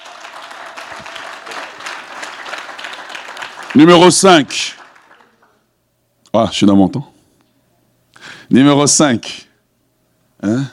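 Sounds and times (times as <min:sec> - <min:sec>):
church congregation clapping to acclaim the Lord during a sermon: 0:00.0 - 0:05.7
speech: 0:03.8 - 0:04.8, 0:06.3 - 0:07.1, 0:08.5 - 0:09.4.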